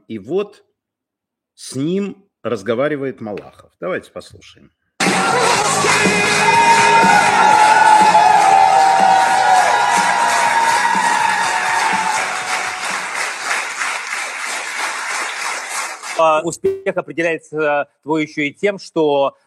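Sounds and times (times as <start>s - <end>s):
speech: 0.1s - 0.7s, 1.6s - 7.6s, 16.2s - 19.4s
studio audience applause: 5.0s - 16.2s.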